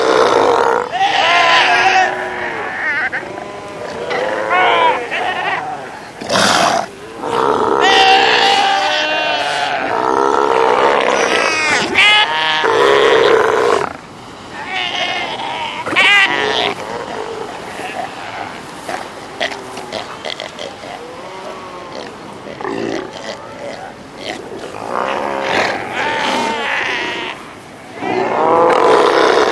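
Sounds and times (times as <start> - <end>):
South American sea lions calling: 0.0 - 29.5.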